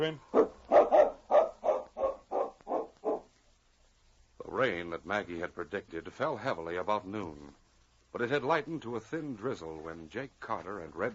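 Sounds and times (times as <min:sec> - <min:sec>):
speech: 0:00.0 - 0:00.3, 0:04.6 - 0:11.1
tracking dog barking: 0:00.3 - 0:03.3.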